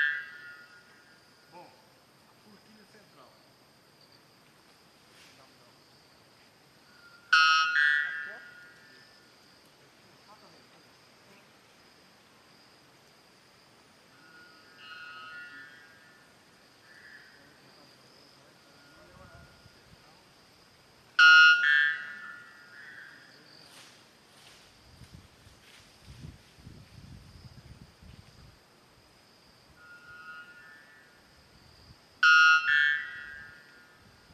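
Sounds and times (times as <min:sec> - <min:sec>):
white bellbird: 0:00.0 - 0:01.1, 0:06.9 - 0:09.1, 0:14.2 - 0:16.3, 0:21.2 - 0:23.4, 0:29.8 - 0:31.2, 0:32.2 - 0:34.0.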